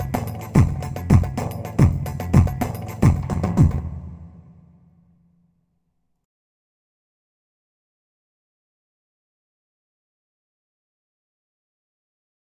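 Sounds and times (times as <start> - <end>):
Korg PA 500 Turkish folk welcome music: 0.0 - 4.8.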